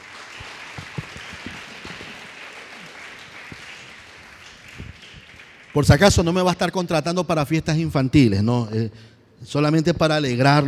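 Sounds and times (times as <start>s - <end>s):
church congregation clapping for the Lord: 0.0s - 7.0s
speech: 5.8s - 10.6s.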